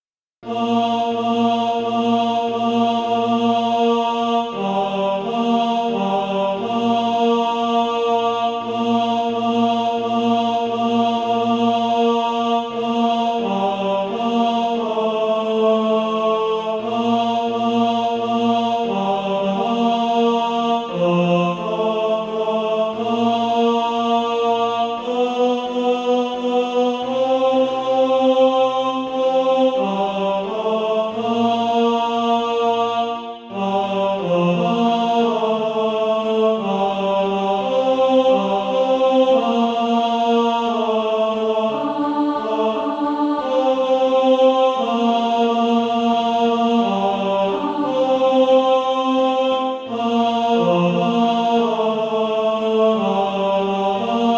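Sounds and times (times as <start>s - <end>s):
tenor singing: 0.4s - 54.3s.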